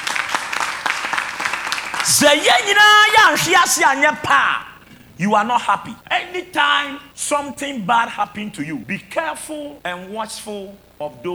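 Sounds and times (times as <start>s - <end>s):
people clapping: 0.0s - 4.0s
speech: 2.1s - 11.3s.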